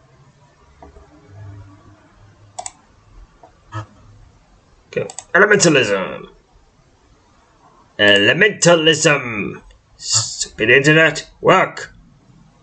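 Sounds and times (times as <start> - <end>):
computer button clicks during an online game: 2.6 - 2.8, 5.0 - 5.3
speech: 5.0 - 6.3, 8.0 - 11.9.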